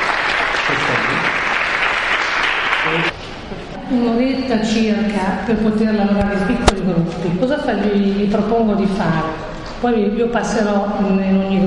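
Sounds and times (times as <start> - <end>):
audience applause: 0.0 - 3.1
speech: 3.9 - 11.6.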